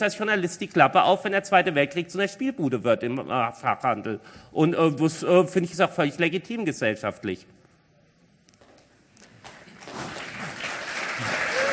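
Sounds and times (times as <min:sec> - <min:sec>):
speech: 0:00.0 - 0:07.6
subdued audience applause: 0:09.5 - 0:11.7.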